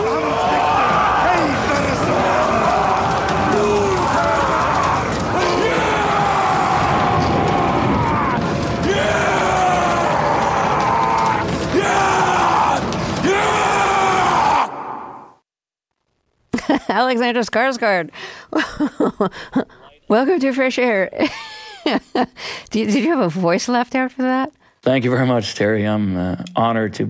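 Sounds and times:
Alexander Skarsgård howling: 0:00.0 - 0:15.3
warriors chanting: 0:00.0 - 0:15.3
speech: 0:17.1 - 0:27.0.

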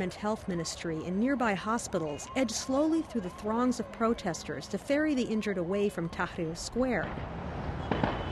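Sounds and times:
speech: 0:00.0 - 0:07.5
tear gas canisters and rubber bullets being fired: 0:07.9 - 0:08.2.

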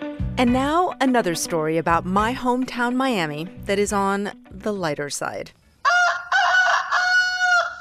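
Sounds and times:
speech: 0:00.4 - 0:05.6
rooster crowing: 0:05.8 - 0:07.8.

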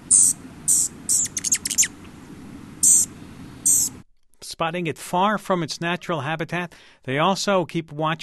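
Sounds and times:
low steady rumble: 0:00.0 - 0:04.0
rufous hummingbird giving chip notes: 0:00.0 - 0:04.0
speech: 0:04.6 - 0:08.2.

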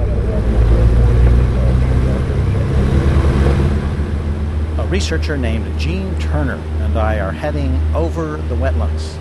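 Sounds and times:
Cessna propeller plane engine in flight: 0:00.0 - 0:09.2
speech: 0:05.0 - 0:09.2.

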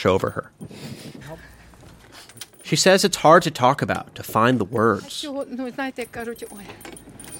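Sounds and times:
speech: 0:00.0 - 0:01.5, 0:02.7 - 0:07.1
keys jangling while unlocking cellar lock: 0:00.3 - 0:03.1, 0:04.8 - 0:07.3.

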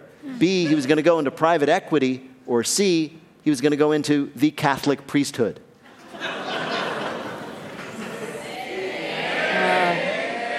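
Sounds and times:
speech: 0:00.3 - 0:05.6
crowd laughing: 0:05.8 - 0:10.5
live crowd shouting an answer: 0:08.2 - 0:10.5.

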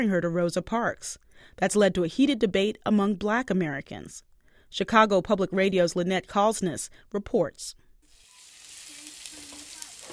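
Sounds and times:
speech: 0:00.0 - 0:07.8
eggs and chorizo frying in a pan in a storefront church kitchen: 0:08.0 - 0:10.1.

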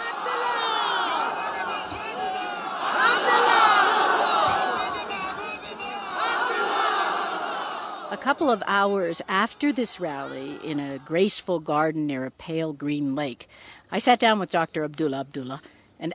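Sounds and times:
political rally crowd cheering and shouting in a stadium: 0:00.0 - 0:11.1
speech: 0:08.2 - 0:16.1.

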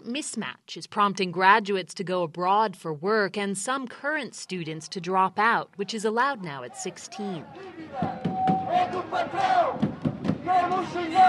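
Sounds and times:
speech: 0:00.1 - 0:09.9, 0:10.5 - 0:11.2
crowd of protesters shouting and chanting: 0:05.9 - 0:11.2.

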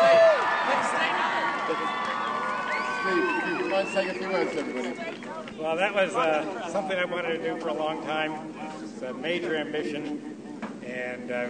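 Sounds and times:
crowd applauding and cheering: 0:00.0 - 0:05.6
speech: 0:03.9 - 0:10.3, 0:10.9 - 0:11.4.

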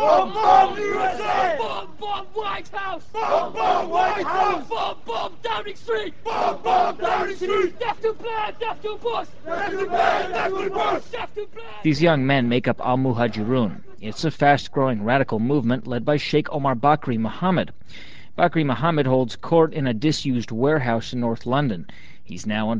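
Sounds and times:
large crowd of men chanting a response in unison: 0:00.0 - 0:11.4
speech: 0:00.0 - 0:22.7.

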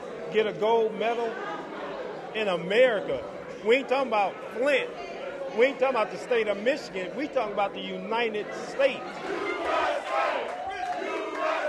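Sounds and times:
speech: 0:00.3 - 0:01.6, 0:02.3 - 0:10.6
gym crowd cheering and chanting as boxer Claressa Shields enters the ring: 0:08.3 - 0:11.6.

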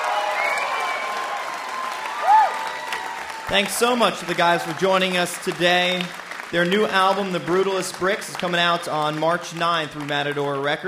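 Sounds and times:
rising and falling whistle: 0:00.0 - 0:01.4
crowd applauding: 0:00.0 - 0:10.8
speech: 0:03.5 - 0:10.8.

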